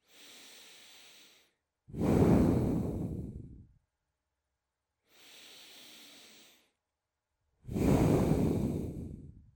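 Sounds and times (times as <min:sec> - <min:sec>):
person breathing: 0:00.0 - 0:03.8, 0:05.0 - 0:06.8, 0:07.6 - 0:09.5.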